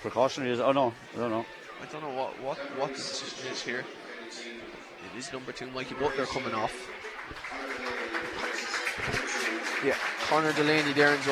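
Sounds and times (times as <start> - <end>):
speech: 0.0 - 8.2, 9.8 - 11.3
supporters applauding substituted player: 6.1 - 11.3.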